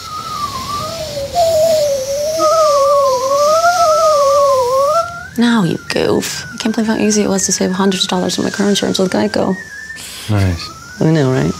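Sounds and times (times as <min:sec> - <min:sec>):
grandpa's nose whistling a tune: 0:00.0 - 0:11.5
speech: 0:05.4 - 0:11.5.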